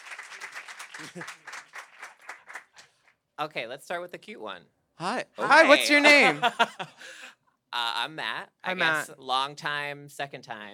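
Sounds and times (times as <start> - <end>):
live audience applause: 0.0 - 3.0
laughter: 1.0 - 1.5, 5.4 - 7.0
speech: 1.0 - 1.5, 3.4 - 7.2, 7.8 - 10.7.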